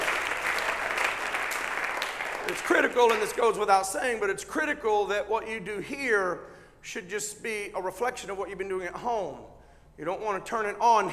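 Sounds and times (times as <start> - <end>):
audience clapping hands: 0.0 - 3.6
speech: 2.5 - 11.1.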